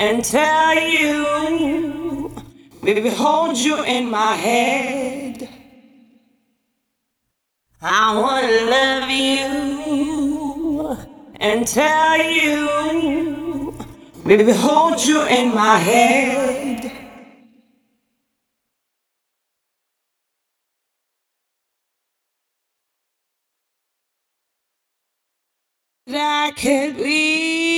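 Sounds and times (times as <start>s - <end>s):
vocals: 0.0s - 6.6s, 7.8s - 17.9s, 26.0s - 27.7s.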